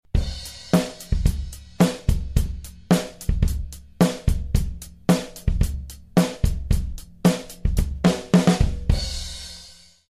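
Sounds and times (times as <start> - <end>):
music beat: 0.1 - 10.0.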